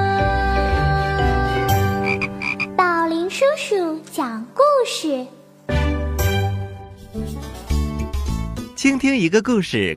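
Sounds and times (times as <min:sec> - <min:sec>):
bright, sustained musical backing with a light tinkling shimmer: 0:00.0 - 0:09.9
frog croaking: 0:01.9 - 0:02.8
speech: 0:08.8 - 0:09.9.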